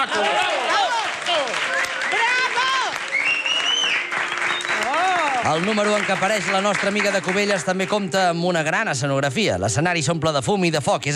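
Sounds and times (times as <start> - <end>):
crowd cheering and whooping: 0.0 - 6.2
large audience applause: 0.0 - 8.2
speech: 5.5 - 11.1.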